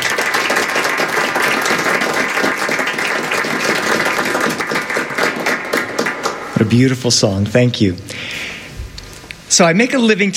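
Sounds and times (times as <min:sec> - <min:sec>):
studio audience applause: 0:00.0 - 0:07.4
speech: 0:06.7 - 0:08.4, 0:09.5 - 0:10.3.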